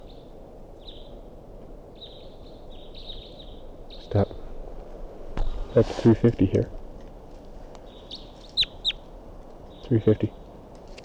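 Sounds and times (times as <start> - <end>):
low noise: 0.0 - 11.0
wild bird calling: 2.0 - 10.6
speech: 4.1 - 4.3, 5.8 - 6.8, 9.9 - 10.4.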